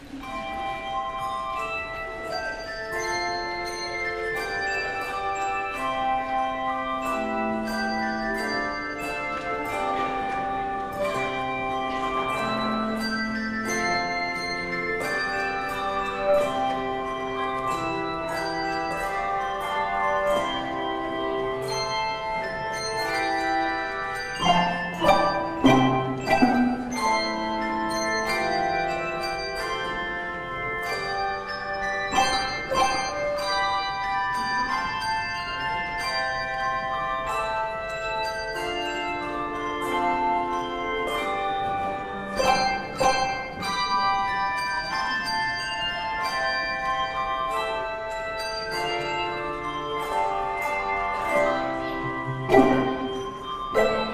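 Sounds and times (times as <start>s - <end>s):
handbells: 0.0s - 54.1s.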